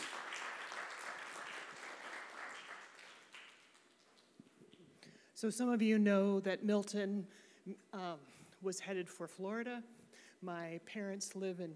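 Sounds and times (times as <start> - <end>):
crowd applause: 0.0 - 4.2
speech: 5.4 - 11.7.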